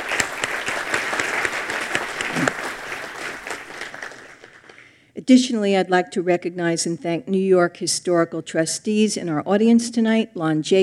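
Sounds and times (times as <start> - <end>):
audience clapping at a historical society lecture: 0.0 - 5.0
speech: 5.3 - 10.8.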